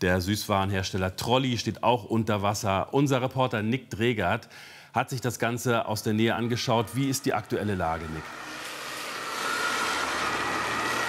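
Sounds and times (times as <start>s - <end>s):
speech: 0.0s - 8.5s
emergency vehicles driving by on a street: 7.0s - 11.0s.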